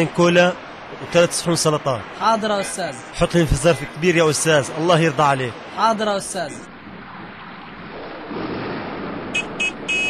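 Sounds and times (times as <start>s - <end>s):
speech: 0.0s - 6.7s
car horn honking: 9.4s - 10.0s.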